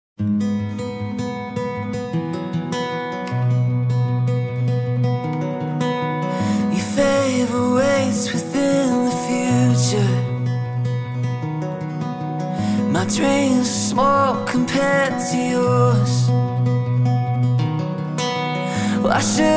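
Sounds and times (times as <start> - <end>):
acoustic music: 0.2 - 19.5.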